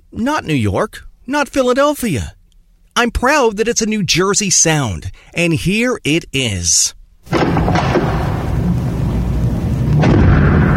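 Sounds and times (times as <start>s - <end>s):
speech: 0.1s - 2.4s, 3.0s - 8.2s
push-bar locking door slamming shut: 7.3s - 10.7s.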